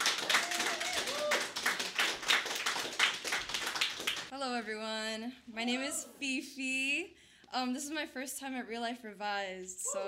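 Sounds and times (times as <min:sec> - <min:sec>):
audience applause: 0:00.0 - 0:04.3
speech: 0:04.7 - 0:10.0.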